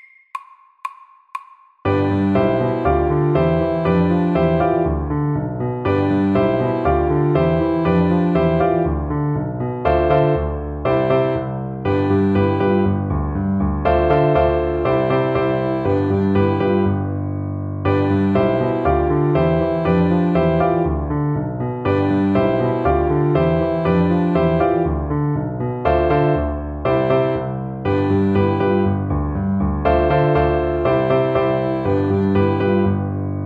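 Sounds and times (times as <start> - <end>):
honky tonk music: 1.9 - 17.1, 17.9 - 33.3.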